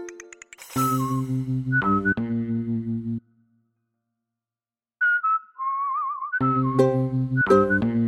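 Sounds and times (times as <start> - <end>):
whistling: 0.7 - 2.3, 5.0 - 8.0.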